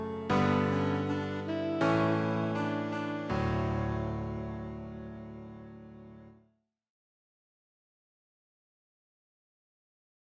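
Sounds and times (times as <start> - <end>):
piano: 0.0 - 6.4.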